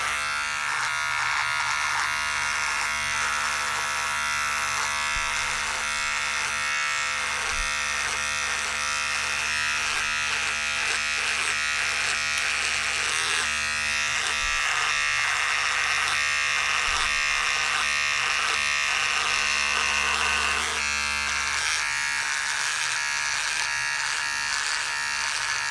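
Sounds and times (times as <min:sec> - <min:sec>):
electric razor shaving: 0:00.0 - 0:25.6.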